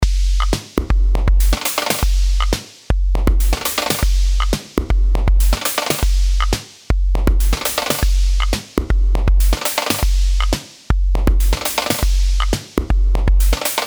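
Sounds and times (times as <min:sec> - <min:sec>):
drum machine: 0:00.0 - 0:13.8.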